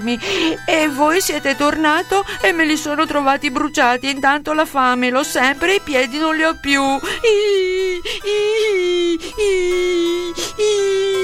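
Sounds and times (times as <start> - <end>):
speech: 0.0 - 11.1
person imitating Pinocchio crying and wailing: 7.0 - 11.2.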